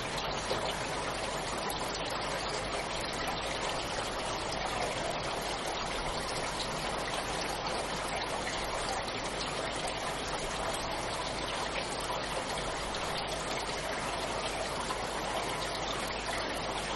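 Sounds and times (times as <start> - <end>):
rain: 0.0 - 16.9.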